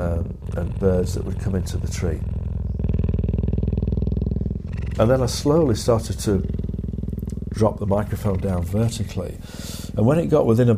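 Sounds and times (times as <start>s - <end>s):
cheetah purring: 0.0s - 10.7s
speech: 0.6s - 2.4s, 5.0s - 6.6s, 7.6s - 10.7s.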